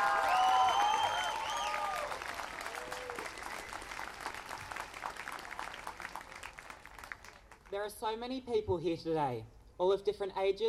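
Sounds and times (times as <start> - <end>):
rally crowd whistles and whoops: 0.0 - 2.2
rally crowd clapping welcoming a speaker: 0.0 - 7.8
speech: 7.8 - 10.6.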